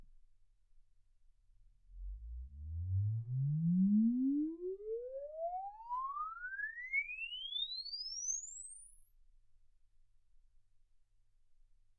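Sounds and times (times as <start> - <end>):
exponential sine sweep from 10 Hz to 24 kHz: 2.0 - 9.4.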